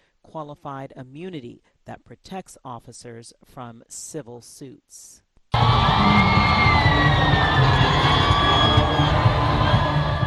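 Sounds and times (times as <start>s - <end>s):
speech: 0.3s - 6.6s
crowds at Kinshasa's Ndolo Airport cheering Pope Francis's arrival: 5.6s - 10.2s
high whistle-like tones: 5.6s - 10.2s.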